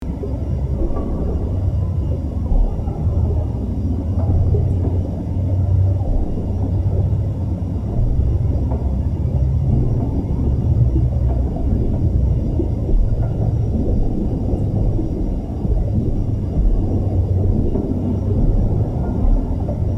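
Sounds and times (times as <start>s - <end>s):
Biolab hall ambience: 0.0s - 19.9s.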